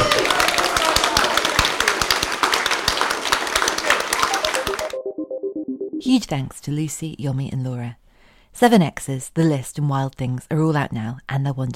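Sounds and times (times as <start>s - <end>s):
audience applause: 0.0s - 5.0s
speech: 6.1s - 11.7s.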